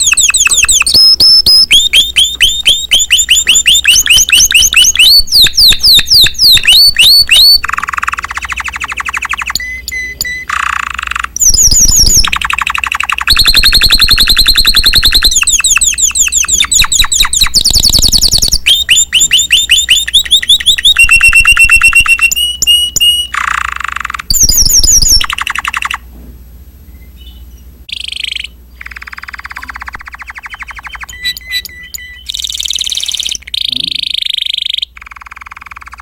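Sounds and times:
Timbrado canary singing: 0:00.0 - 0:26.1, 0:26.8 - 0:36.0.

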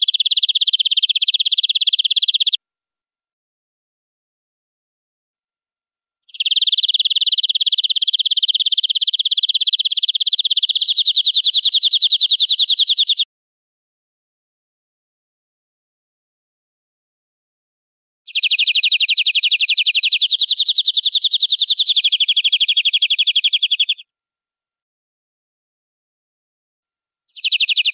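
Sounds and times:
European greenfinch buzzy trill: 0:00.0 - 0:02.6, 0:06.3 - 0:13.2, 0:18.3 - 0:24.0, 0:27.4 - 0:27.9.

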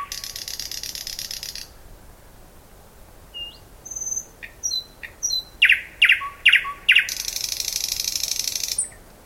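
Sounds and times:
thrush nightingale song with buzzy rattles, thin whistles and slurred notes: 0:00.0 - 0:01.7, 0:03.4 - 0:09.0.

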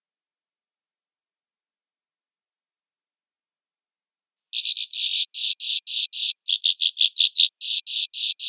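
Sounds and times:
swiftlet rasping chirps: 0:04.6 - 0:08.4.

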